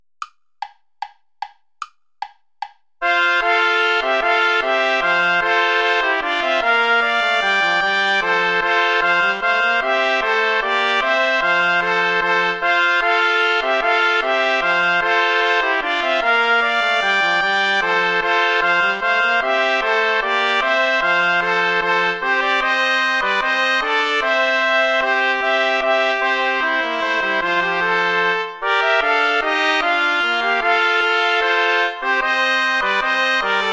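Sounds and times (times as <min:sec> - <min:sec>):
bourree play-along backing track without trumpet: 0:02.2 - 0:33.7.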